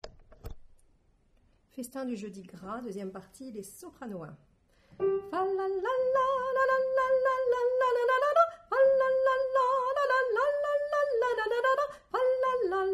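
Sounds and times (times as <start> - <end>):
soprano singing: 5.0 - 12.9.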